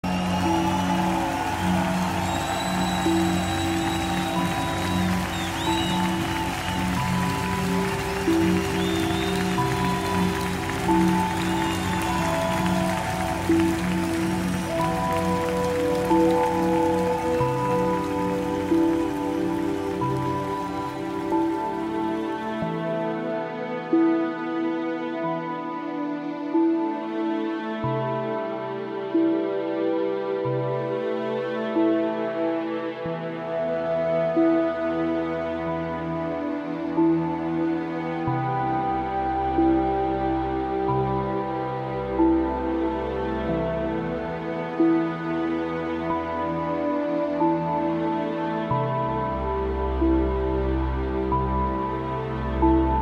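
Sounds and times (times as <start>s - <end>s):
relaxing epic fantasy music: 0.0s - 53.0s.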